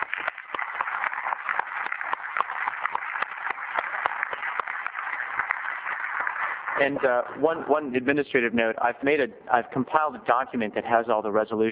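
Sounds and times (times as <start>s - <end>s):
audience round of applause: 0.0s - 8.1s
speech: 6.8s - 11.7s.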